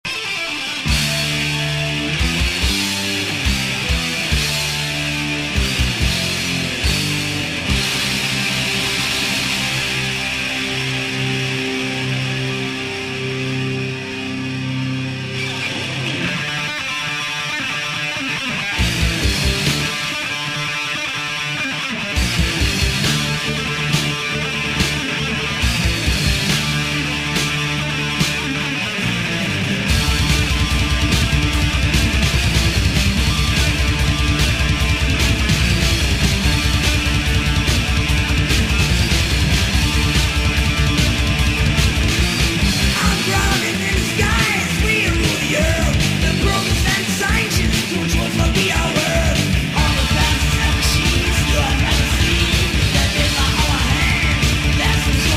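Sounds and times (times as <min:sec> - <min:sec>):
death metal music: 0:00.1 - 0:55.3.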